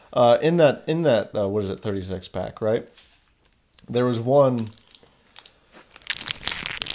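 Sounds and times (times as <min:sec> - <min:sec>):
speech: 0:00.1 - 0:03.1, 0:03.8 - 0:04.8
Twix chocolate bar wrapper crinkling and tearing open: 0:04.6 - 0:06.9.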